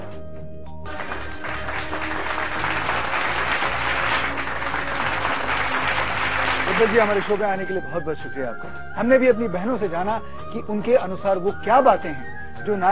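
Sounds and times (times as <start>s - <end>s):
loud applause welcoming a guest: 0.9s - 7.4s
speech: 6.8s - 12.8s.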